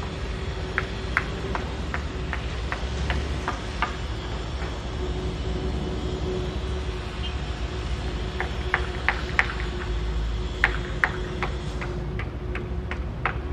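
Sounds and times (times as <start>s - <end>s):
construction works in an industrial city: 0.0s - 13.5s.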